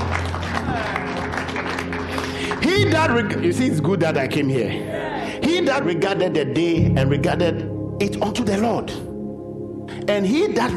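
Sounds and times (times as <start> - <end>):
audience clapping hands: 0.0 - 3.6
speech: 2.7 - 9.1, 10.1 - 10.7.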